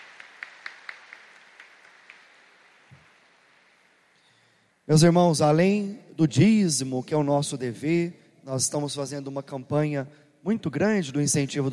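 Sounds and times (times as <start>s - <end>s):
audience applause: 0.0s - 3.9s
speech: 4.9s - 11.7s.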